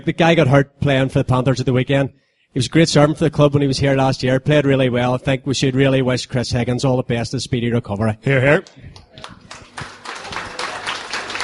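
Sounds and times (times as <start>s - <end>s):
speech: 0.0s - 9.9s
applause: 9.2s - 11.4s.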